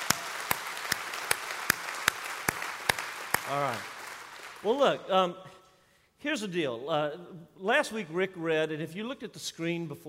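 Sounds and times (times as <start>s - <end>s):
church congregation applauding: 0.0s - 5.1s
speech: 3.5s - 4.0s, 4.6s - 5.6s, 6.2s - 10.0s.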